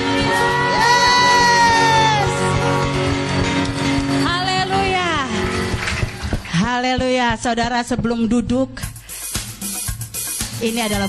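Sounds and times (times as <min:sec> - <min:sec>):
audience clapping and cheering: 0:00.0 - 0:07.5
person shouting: 0:00.4 - 0:02.4
speech: 0:06.9 - 0:08.9, 0:10.6 - 0:11.0.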